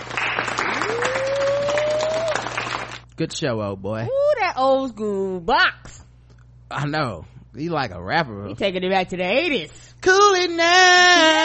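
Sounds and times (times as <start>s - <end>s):
golf clap: 0.0s - 3.0s
speech: 3.2s - 6.0s, 6.7s - 11.4s.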